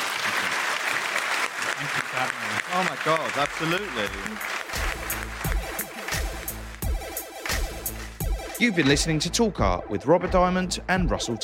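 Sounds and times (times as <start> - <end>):
audience applause: 0.0 - 7.6
speech: 1.8 - 4.6, 8.6 - 11.4.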